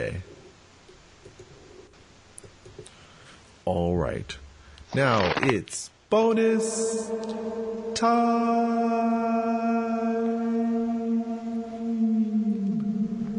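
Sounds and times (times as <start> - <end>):
speech: 3.7 - 9.8
voice imitating an echo with a sustained hum: 6.3 - 13.3.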